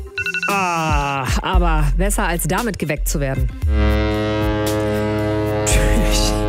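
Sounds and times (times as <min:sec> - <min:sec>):
speech: 0:00.5 - 0:04.2, 0:05.6 - 0:06.4
ship's foghorn blast: 0:03.6 - 0:06.4.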